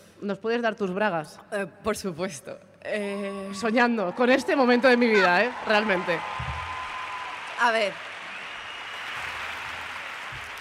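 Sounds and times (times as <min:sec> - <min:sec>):
speech: 0:00.2 - 0:06.5, 0:07.6 - 0:08.1
audience clapping: 0:04.1 - 0:10.5.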